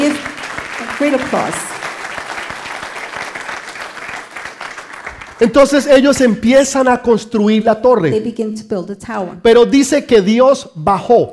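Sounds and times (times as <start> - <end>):
audience applauding: 0.0 - 6.3
speech: 1.0 - 1.7, 5.4 - 11.3.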